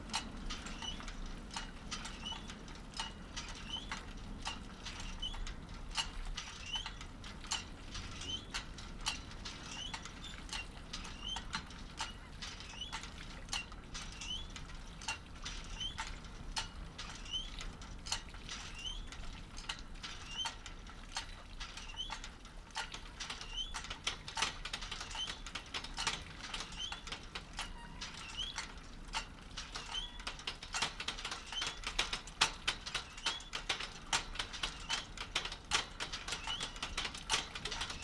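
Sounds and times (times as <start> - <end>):
windmill pump activated by the wind: 0.0 - 38.0.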